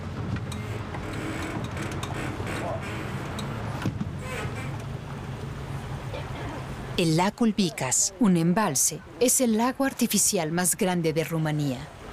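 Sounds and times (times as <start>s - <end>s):
motorboat engine droning on a lake: 0.0s - 9.4s
rushing water: 0.0s - 12.1s
speech: 7.0s - 12.0s.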